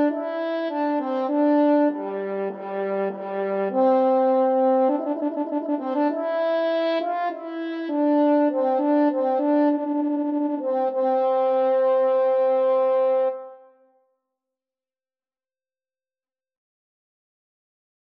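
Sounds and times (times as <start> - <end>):
French horn duet: 0.0 - 13.8.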